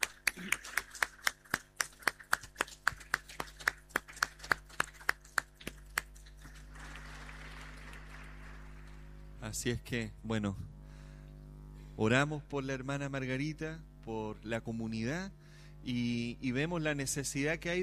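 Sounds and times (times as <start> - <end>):
audience applause: 0.0 - 9.3
speech: 9.5 - 10.7, 12.0 - 17.8.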